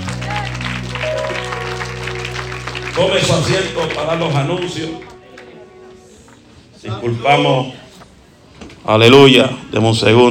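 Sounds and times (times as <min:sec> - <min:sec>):
audience applauding: 0:00.0 - 0:06.1
speech: 0:03.0 - 0:05.1, 0:06.8 - 0:07.8, 0:08.8 - 0:10.2.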